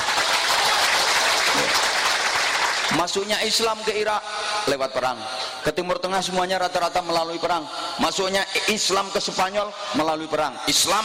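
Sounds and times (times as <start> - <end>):
audience applause during a religious lecture: 0.0 - 3.2
speech: 3.0 - 11.0.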